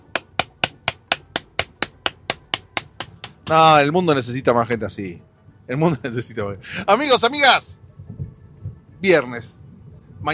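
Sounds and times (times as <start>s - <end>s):
hand clapping against leg: 0.0s - 3.6s
speech: 3.5s - 7.8s, 9.0s - 9.6s.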